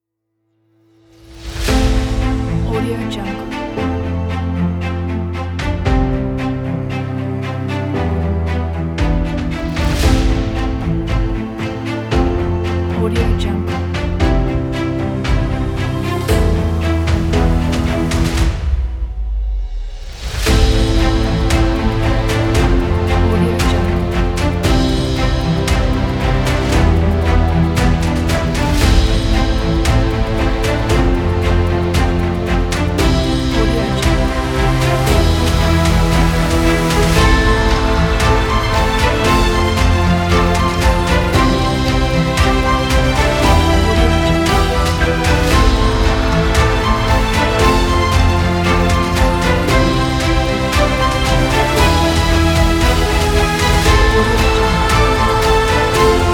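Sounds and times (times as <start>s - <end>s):
epic music: 0.7s - 56.3s.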